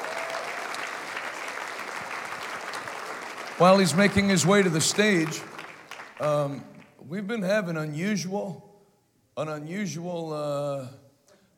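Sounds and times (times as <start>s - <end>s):
audience hand clapping: 0.0s - 7.0s
speech: 3.6s - 5.6s, 6.2s - 8.7s, 9.4s - 11.0s.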